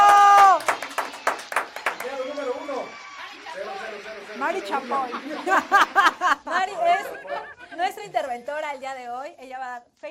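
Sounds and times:
audience applause: 0.0s - 7.0s
laughter: 3.2s - 8.2s
speech: 4.6s - 10.0s.

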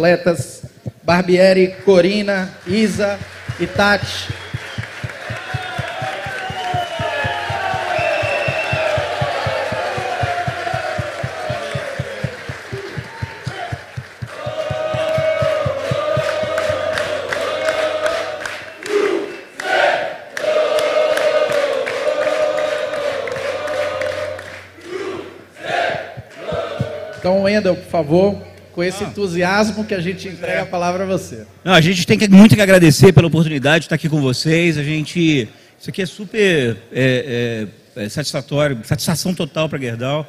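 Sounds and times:
speech: 0.0s - 4.4s, 27.5s - 40.2s
audience applause: 2.6s - 19.0s, 20.7s - 24.7s
audience cheering: 2.6s - 27.2s.

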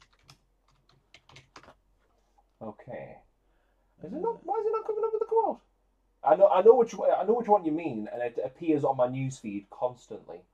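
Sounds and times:
typing on a computer keyboard: 0.0s - 1.8s
speech: 2.6s - 3.2s, 4.0s - 10.5s.

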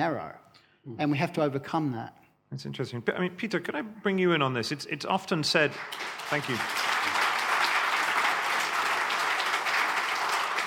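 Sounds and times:
speech: 0.0s - 6.9s
audience applause: 5.6s - 10.6s.

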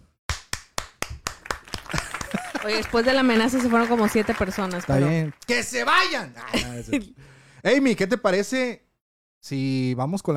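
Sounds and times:
applause: 0.3s - 6.1s
laughter: 1.8s - 3.8s, 6.4s - 7.1s
speech: 2.6s - 8.8s, 9.4s - 10.3s.

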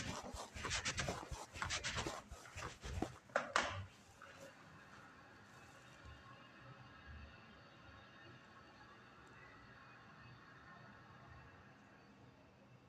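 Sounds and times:
sharp scrapes: 0.0s - 3.3s
spraying and wiping: 0.0s - 3.9s.

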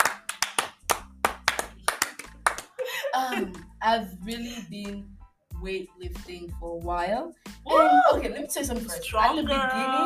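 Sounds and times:
hand clapping: 0.0s - 2.8s
speech: 3.2s - 10.0s.

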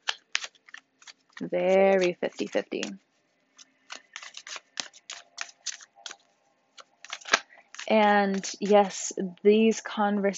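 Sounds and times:
tarot card snaps and flicks drawn from the deck: 0.0s - 3.0s, 3.6s - 8.7s
speech: 1.4s - 3.1s, 7.9s - 10.3s.

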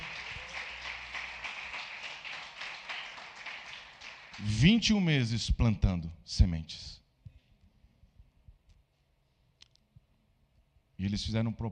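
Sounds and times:
audience applauding: 0.0s - 4.7s
speech: 4.4s - 7.0s, 11.0s - 11.6s.

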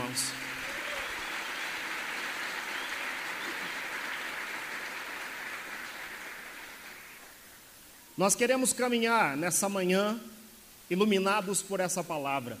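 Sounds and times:
audience applause: 0.0s - 7.4s
speech: 8.2s - 12.5s.

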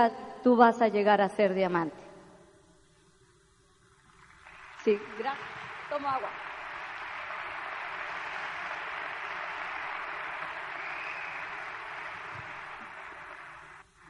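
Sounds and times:
speech: 0.0s - 2.0s, 4.8s - 6.4s
audience applause: 4.1s - 14.0s.

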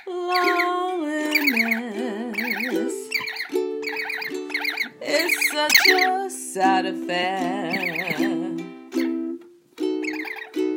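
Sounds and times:
speech: 0.0s - 0.7s, 5.6s - 8.4s
pet bird squeaking: 0.0s - 6.2s, 10.0s - 10.6s.

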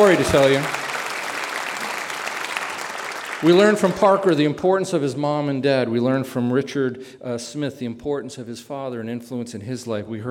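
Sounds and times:
speech: 0.0s - 0.8s, 3.4s - 10.3s
audience applause: 0.0s - 4.4s.

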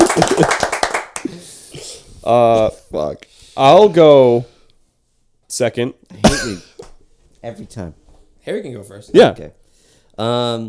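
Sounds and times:
people clapping hands: 0.0s - 1.4s
speech: 2.3s - 4.5s, 5.5s - 6.7s, 7.4s - 9.6s, 10.2s - 10.6s.

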